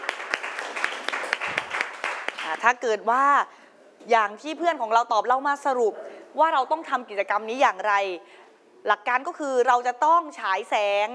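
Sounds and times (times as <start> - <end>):
classroom applause for a group: 0.0 - 2.6
speech: 2.6 - 11.1.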